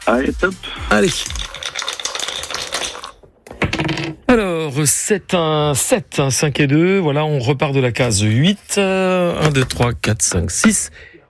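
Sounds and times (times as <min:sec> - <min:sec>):
speech: 0:00.1 - 0:01.4, 0:04.3 - 0:11.2
dice being thrown during a radio game show: 0:01.0 - 0:04.3, 0:09.4 - 0:09.8.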